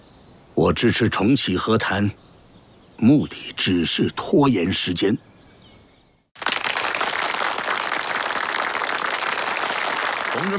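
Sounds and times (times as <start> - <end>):
speech: 0.6 - 2.3, 3.0 - 5.3
crowd applause: 6.4 - 10.5.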